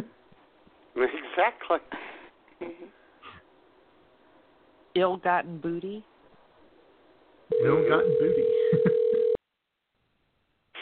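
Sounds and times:
speech: 1.0s - 2.0s, 2.6s - 3.0s, 5.0s - 6.1s, 7.5s - 9.0s
telephone being dialed for a call: 7.5s - 9.4s.

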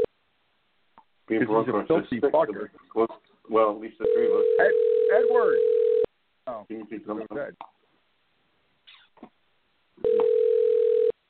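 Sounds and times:
speech: 1.3s - 5.8s, 6.5s - 7.8s
telephone ringing: 4.0s - 6.1s, 10.0s - 11.2s.

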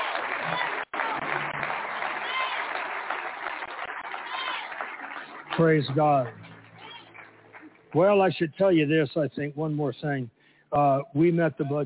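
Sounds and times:
audience clapping: 0.0s - 8.6s
speech: 5.6s - 6.4s, 7.9s - 11.8s.

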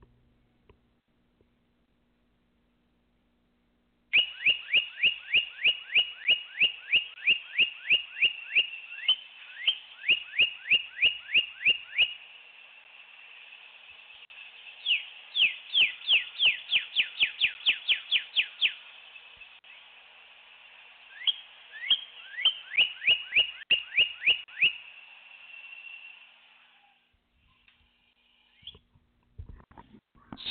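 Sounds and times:
red cardinal singing downslurred whistles: 4.1s - 12.2s, 14.8s - 18.8s, 21.2s - 24.8s.

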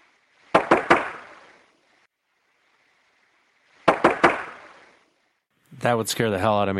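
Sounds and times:
faint hiss: 0.0s - 6.4s
loud rapid knocks: 0.5s - 1.3s, 3.9s - 4.6s
speech: 5.8s - 6.7s.

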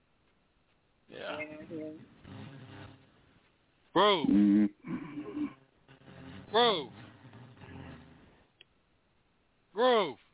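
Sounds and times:
speech: 1.1s - 3.0s, 4.0s - 4.7s, 6.5s - 7.0s, 9.8s - 10.2s
person snoring: 4.3s - 5.6s.

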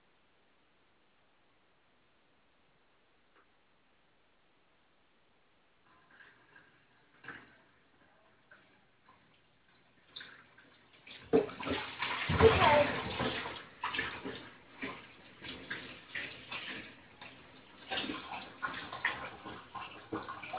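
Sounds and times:
running water splashing: 6.0s - 20.5s.

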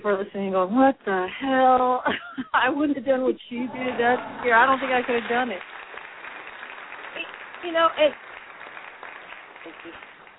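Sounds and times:
speech: 0.0s - 5.7s, 7.6s - 8.2s, 9.6s - 10.1s
laughter: 3.6s - 4.9s
applause sound effect: 3.8s - 10.3s.

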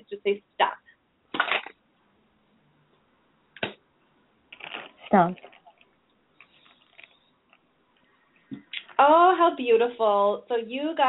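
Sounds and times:
speech: 0.0s - 0.6s, 5.1s - 5.5s, 9.0s - 11.0s
shuffling a deck of cards: 4.6s - 5.8s.

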